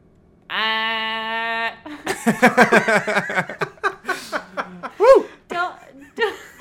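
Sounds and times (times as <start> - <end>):
person imitating a goose honk: 0.5 - 1.9
person laughing: 1.9 - 6.5
speech: 2.2 - 3.7.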